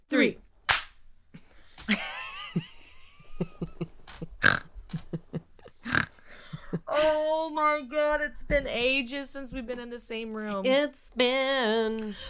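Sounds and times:
hands clapping: 0.7 - 0.9
laughter: 1.5 - 7.1
speech: 7.0 - 12.2.

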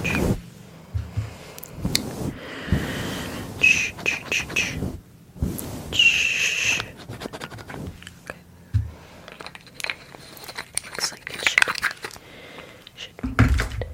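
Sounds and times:
low thumps: 0.0 - 3.0, 8.6 - 9.0
hair being handled, rustling and crackling: 0.0 - 12.2.

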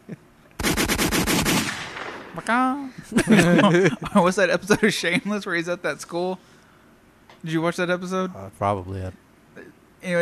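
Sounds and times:
laughter: 0.0 - 0.2, 2.9 - 5.4
AK rifle automatic gunfire: 0.6 - 2.5
speech: 2.4 - 6.6, 7.4 - 9.2.

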